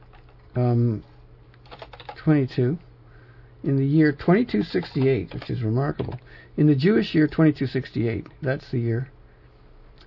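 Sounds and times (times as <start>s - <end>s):
speech: 0.6s - 1.1s, 2.3s - 2.8s, 3.6s - 9.2s
computer keyboard keys tapped while typing a date into a calendar converter: 1.6s - 2.2s, 4.5s - 5.6s.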